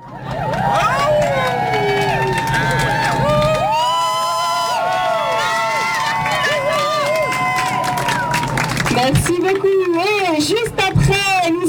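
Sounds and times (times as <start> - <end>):
crowd cheering: 0.0 - 11.5.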